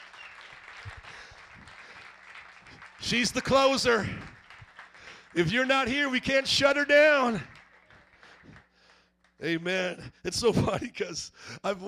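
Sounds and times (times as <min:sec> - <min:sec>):
audience applause and clapping: 0:00.0 - 0:09.0
speech: 0:03.1 - 0:04.3, 0:05.4 - 0:07.5, 0:09.4 - 0:11.8.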